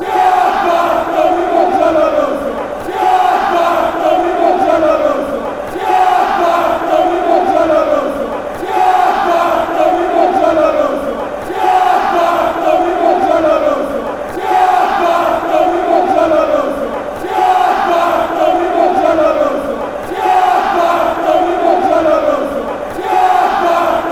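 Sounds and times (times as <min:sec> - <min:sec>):
fans chanting: 0:00.0 - 0:24.0.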